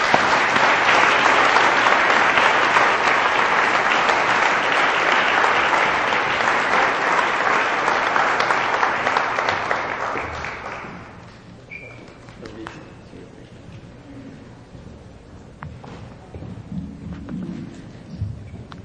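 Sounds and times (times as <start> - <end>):
audience applause welcoming a speaker to the stage: 0.0 - 11.3.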